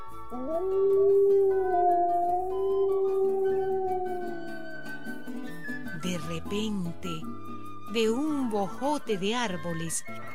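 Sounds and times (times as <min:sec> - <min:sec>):
speech: 0:00.3 - 0:01.2, 0:06.1 - 0:10.3
wolf howling: 0:00.3 - 0:05.0.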